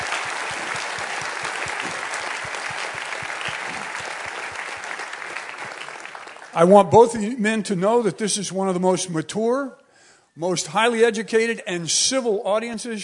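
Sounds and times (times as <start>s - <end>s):
audience applause: 0.0s - 6.8s
speech: 6.6s - 9.8s, 10.4s - 13.0s.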